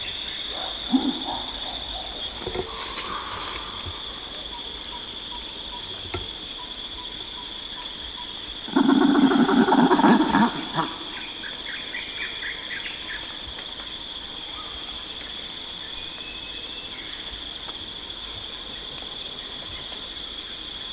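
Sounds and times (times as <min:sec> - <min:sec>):
steady high insect drone: 0:00.0 - 0:20.9
chimpanzees hooting: 0:00.5 - 0:05.1, 0:08.7 - 0:11.3.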